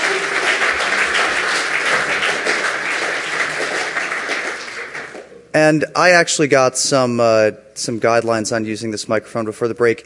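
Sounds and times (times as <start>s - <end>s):
audience applause: 0.0s - 5.3s
speech: 5.5s - 10.0s.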